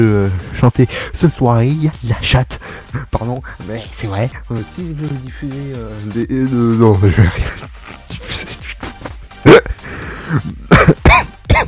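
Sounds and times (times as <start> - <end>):
speech: 0.0 - 8.5, 10.3 - 10.7
man coughing and choking while laughing: 7.4 - 11.6.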